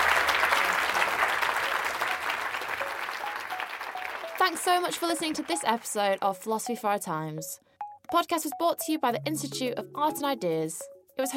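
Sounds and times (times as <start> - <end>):
audience applause: 0.0 - 6.2
speech: 4.4 - 11.3.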